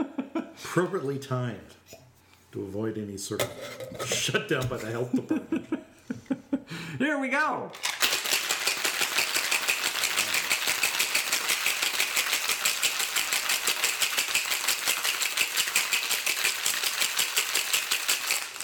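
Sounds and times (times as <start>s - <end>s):
speech: 0.0s - 5.8s, 6.7s - 7.9s
cocktail shaker rattling with ice: 7.8s - 18.6s.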